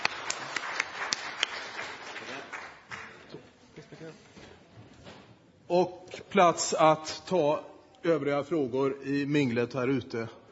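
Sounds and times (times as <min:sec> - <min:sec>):
audience applause: 0:00.0 - 0:03.3
speech: 0:05.7 - 0:10.4.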